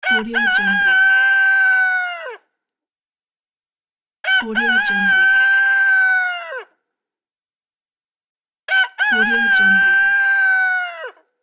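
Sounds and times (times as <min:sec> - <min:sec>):
rooster: 0:00.0 - 0:02.5, 0:04.2 - 0:06.8, 0:08.7 - 0:11.3.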